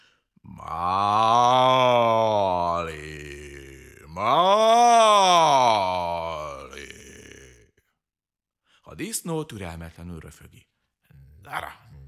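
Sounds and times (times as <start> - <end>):
human voice imitating a cow moo: 0.5 - 7.6
speech: 9.3 - 10.8.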